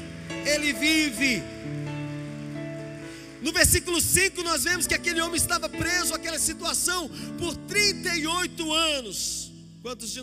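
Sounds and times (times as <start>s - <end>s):
audience applause: 0.0s - 4.1s
speech: 0.6s - 1.9s, 3.4s - 10.2s.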